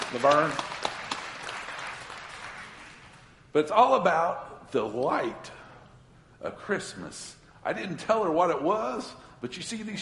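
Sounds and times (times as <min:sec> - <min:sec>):
audience applause: 0:00.0 - 0:03.2
speech: 0:00.1 - 0:00.7, 0:03.6 - 0:05.6, 0:06.4 - 0:09.9.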